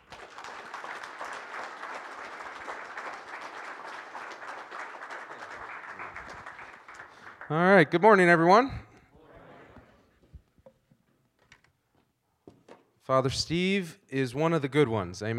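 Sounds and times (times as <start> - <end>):
audience applause welcoming a speaker at a diocesan gathering: 0.0 - 8.0
speech: 7.5 - 8.8, 13.1 - 15.3.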